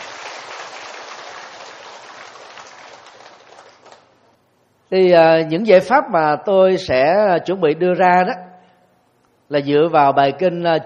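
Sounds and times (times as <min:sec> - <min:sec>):
audience applause: 0:00.0 - 0:04.1
speech: 0:04.9 - 0:08.5, 0:09.5 - 0:10.8.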